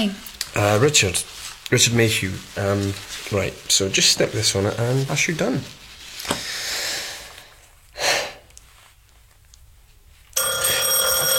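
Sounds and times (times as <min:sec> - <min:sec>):
speech: 0:00.0 - 0:06.4
doorbell ringing: 0:10.4 - 0:11.3.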